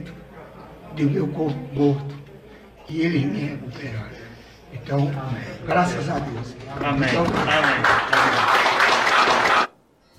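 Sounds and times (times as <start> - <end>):
speech: 1.0 - 2.2, 2.9 - 8.6
audience applause: 7.0 - 9.7.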